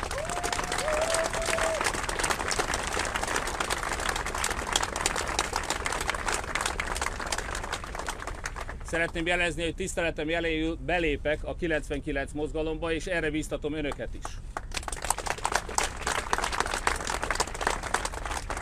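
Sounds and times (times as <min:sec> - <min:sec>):
audience applause: 0:00.0 - 0:08.8, 0:14.7 - 0:18.6
speech: 0:08.9 - 0:14.4.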